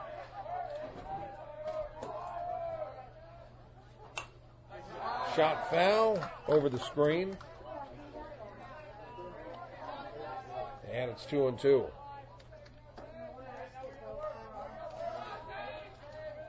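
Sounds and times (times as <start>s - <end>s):
ballpark crowd chatter: 0.0s - 16.4s
speech: 5.4s - 7.5s, 11.0s - 12.0s.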